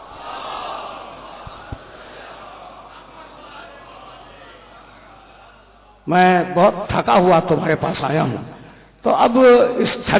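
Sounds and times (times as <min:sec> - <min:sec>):
crowd shouting slogan in response: 0:00.0 - 0:05.9
speech: 0:06.1 - 0:10.1.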